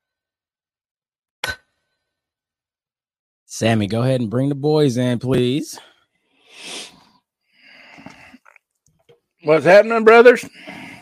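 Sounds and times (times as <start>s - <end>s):
speech: 3.5s - 5.9s, 9.4s - 10.9s
heavy breathing into a microphone: 6.3s - 8.5s, 10.5s - 11.0s
quick sniffs: 6.4s - 7.1s.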